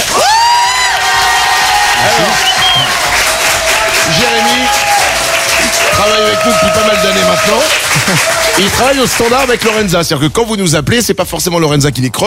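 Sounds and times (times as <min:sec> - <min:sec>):
cheering and high whoops: 0:00.0 - 0:08.9
audience applause: 0:00.0 - 0:10.0
speech: 0:07.4 - 0:12.2.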